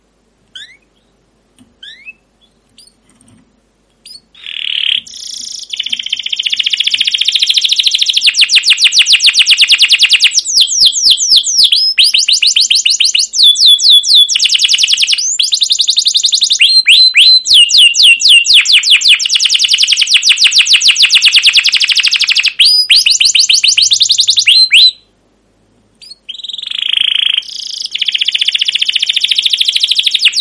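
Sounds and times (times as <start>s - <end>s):
canary song: 0.5s - 3.3s, 4.0s - 25.1s, 26.0s - 30.3s.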